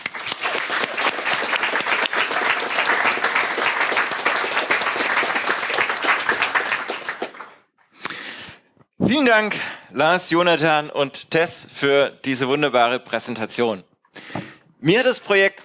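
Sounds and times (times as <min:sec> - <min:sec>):
audience applause: 0:00.0 - 0:07.6
speech: 0:09.1 - 0:13.9, 0:14.8 - 0:15.6.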